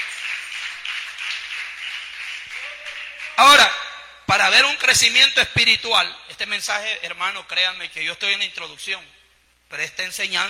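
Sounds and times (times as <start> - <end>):
audience applause: 0.0 - 3.6
speech: 4.5 - 10.4.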